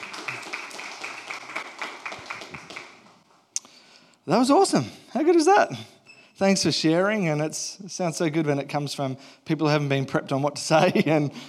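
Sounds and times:
audience applause: 0:00.0 - 0:03.2
speech: 0:04.3 - 0:11.4.

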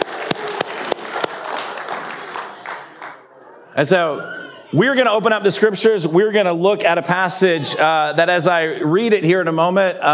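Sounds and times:
audience applause: 0:00.0 - 0:03.3
speech: 0:03.8 - 0:10.1.

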